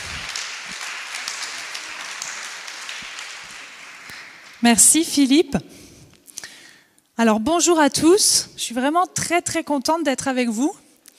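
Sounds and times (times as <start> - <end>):
audience applause: 0.0 - 5.0
speech: 4.6 - 5.8, 7.2 - 10.8.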